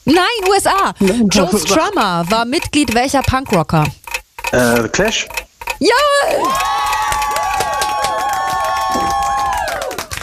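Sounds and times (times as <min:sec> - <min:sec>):
speech: 0:00.1 - 0:06.9
audience cheering and applause: 0:06.0 - 0:10.2.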